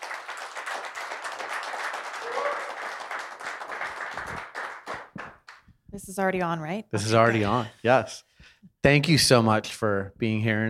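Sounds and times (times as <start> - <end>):
audience applauding a UFC champion invited up as a guest: 0.0 - 5.6
speech: 6.0 - 10.6.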